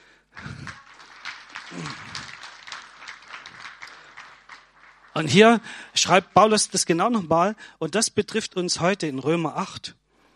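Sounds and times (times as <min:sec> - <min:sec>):
crowd applause: 0:00.0 - 0:06.6
low voices murmuring: 0:00.4 - 0:04.0
speech: 0:01.7 - 0:02.1, 0:05.2 - 0:10.0.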